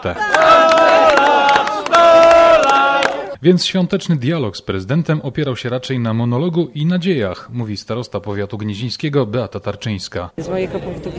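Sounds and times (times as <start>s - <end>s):
speech: 0.0s - 0.7s, 3.4s - 11.1s
crowd shouting and chanting: 0.0s - 3.4s.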